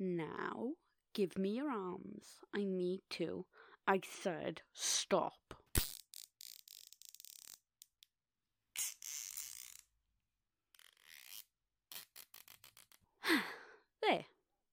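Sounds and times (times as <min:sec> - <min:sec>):
speech: 0:00.0 - 0:05.6, 0:14.1 - 0:14.3
zip ties tightened around wrists: 0:05.7 - 0:08.1, 0:08.7 - 0:10.0, 0:10.7 - 0:13.1.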